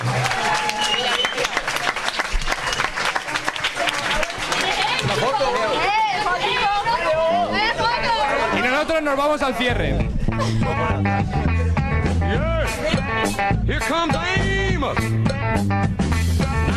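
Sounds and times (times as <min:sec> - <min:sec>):
applause for the contestants: 0:00.0 - 0:06.0
laughter: 0:03.8 - 0:08.9, 0:09.6 - 0:13.6
speech: 0:09.1 - 0:11.5, 0:12.3 - 0:16.1.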